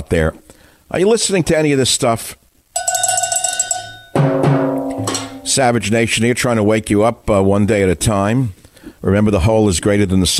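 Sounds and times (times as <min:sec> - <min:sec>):
speech: 0:00.0 - 0:02.4, 0:05.5 - 0:10.3
cowbell being struck: 0:02.8 - 0:05.7
heavy ringing hit: 0:02.8 - 0:05.9.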